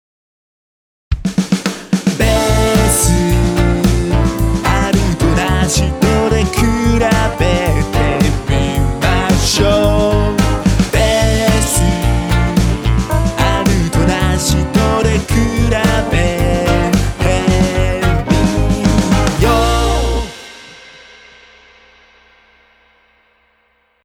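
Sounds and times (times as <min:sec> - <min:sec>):
bass: 0:02.2 - 0:20.6.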